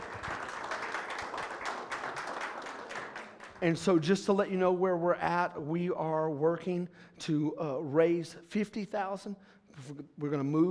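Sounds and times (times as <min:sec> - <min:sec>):
audience clapping: 0:00.0 - 0:04.1
speech: 0:03.6 - 0:10.7.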